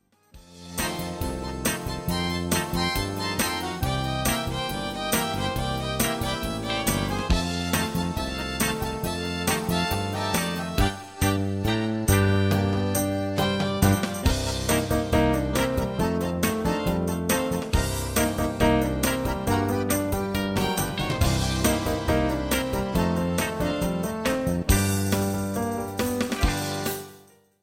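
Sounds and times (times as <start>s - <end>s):
Mexican blues music: 0.4s - 27.3s.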